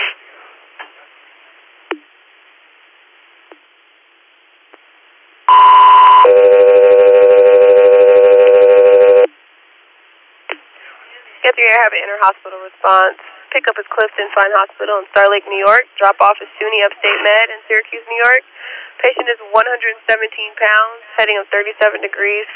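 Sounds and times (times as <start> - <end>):
dispatch radio two-tone paging tones: 5.5 - 9.3
speech: 11.6 - 22.5.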